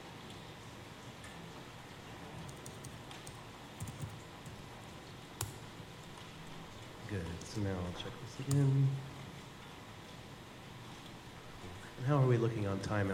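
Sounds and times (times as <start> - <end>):
soft hiss: 0.0 - 13.1
faint typing on a computer keyboard: 2.4 - 4.6
speech: 7.1 - 9.1, 12.0 - 13.1.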